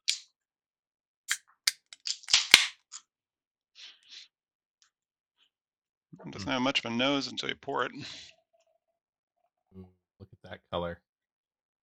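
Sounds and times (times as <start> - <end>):
whiskey bottle being opened: 1.7 - 2.8
speech: 6.2 - 8.4, 9.8 - 11.1.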